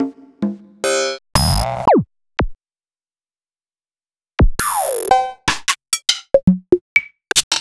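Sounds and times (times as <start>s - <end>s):
retrowave percussion: 0.0s - 2.6s, 4.4s - 4.8s, 6.4s - 7.4s.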